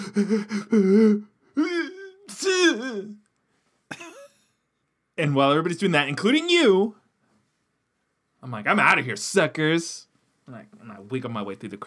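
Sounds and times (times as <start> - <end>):
speech: 0.1 - 1.7, 2.4 - 3.2, 5.2 - 7.0, 8.4 - 11.8
person imitating a sneeze: 1.6 - 3.2.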